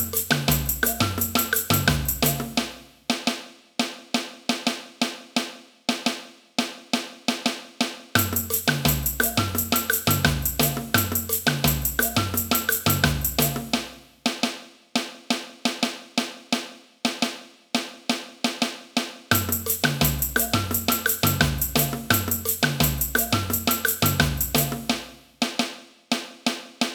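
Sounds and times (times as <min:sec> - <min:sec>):
samba music: 0:00.0 - 0:02.9, 0:08.2 - 0:14.0, 0:19.3 - 0:25.6
caixa snare drum: 0:00.0 - 0:26.9.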